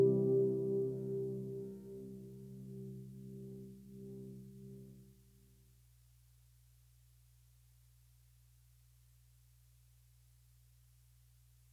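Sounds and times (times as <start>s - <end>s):
ambient organ: 0.0s - 4.9s.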